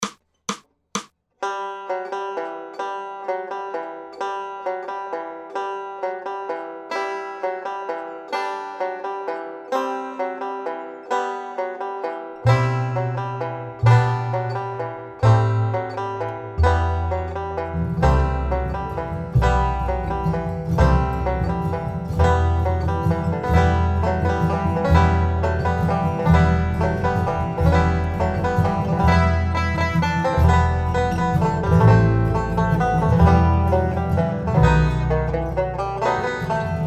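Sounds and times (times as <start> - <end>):
banjo: 1.0 - 36.8.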